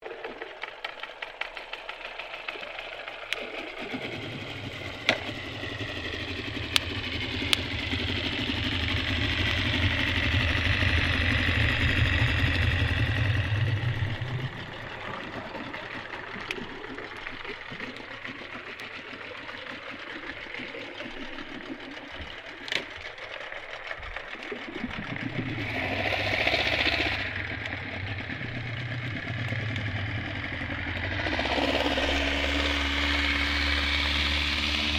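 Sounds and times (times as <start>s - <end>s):
outboard boat motor starting and moving off submerged: 0.0s - 34.9s.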